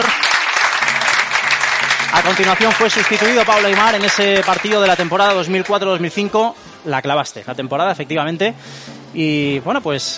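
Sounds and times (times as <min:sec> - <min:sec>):
crowd applause: 0:00.0 - 0:06.2
speech: 0:02.2 - 0:10.1.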